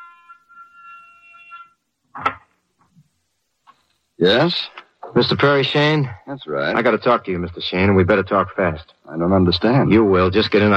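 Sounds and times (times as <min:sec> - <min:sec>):
apartment door buzzer: 0:00.0 - 0:01.8
speech: 0:04.2 - 0:10.7.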